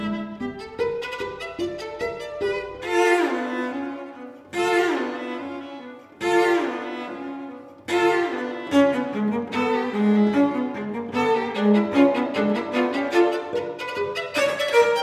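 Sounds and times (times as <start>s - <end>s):
cello: 0.0s - 15.0s
violin: 0.0s - 15.0s.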